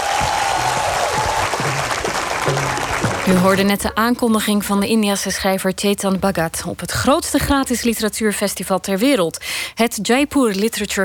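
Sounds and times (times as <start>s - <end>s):
crowd clapping at a literature festival: 0.0s - 3.6s
speech: 3.3s - 11.0s.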